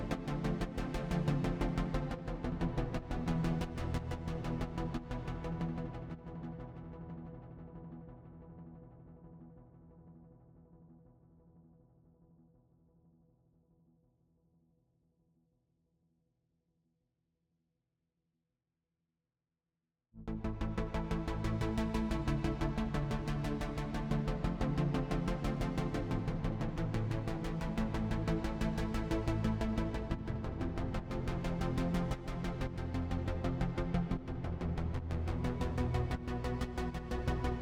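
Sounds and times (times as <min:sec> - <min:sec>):
bass: 0:00.0 - 0:10.0, 0:20.2 - 0:37.6.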